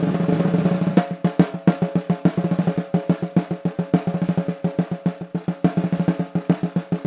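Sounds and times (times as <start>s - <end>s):
snare drum: 0.0s - 7.0s.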